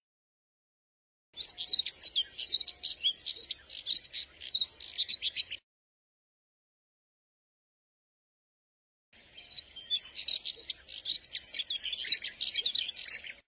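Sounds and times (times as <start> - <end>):
Moussier's redstart twittering warble: 1.4 - 5.6, 9.2 - 13.4.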